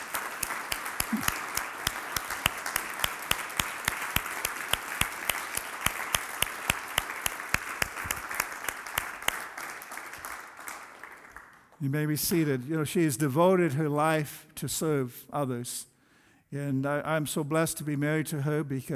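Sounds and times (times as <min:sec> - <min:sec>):
audience applause: 0:00.0 - 0:11.7
speech: 0:11.8 - 0:15.9, 0:16.5 - 0:18.9.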